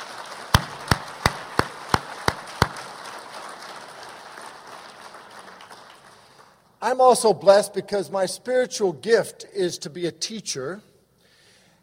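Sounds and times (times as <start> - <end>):
audience applause: 0.0 - 6.6
speech: 6.8 - 10.9.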